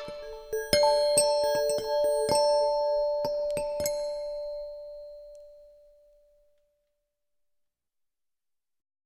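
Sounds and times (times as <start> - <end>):
Christmas bells ringing: 0.0 - 5.4.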